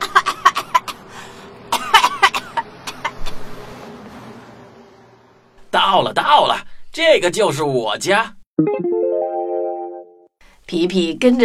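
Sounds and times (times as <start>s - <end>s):
mouse coughing from a choking smell: 0.0s - 1.0s, 1.7s - 3.4s
speech: 5.9s - 8.8s, 10.7s - 11.4s.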